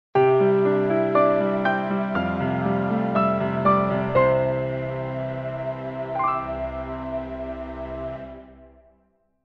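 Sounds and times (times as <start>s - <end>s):
piano: 0.2s - 9.4s.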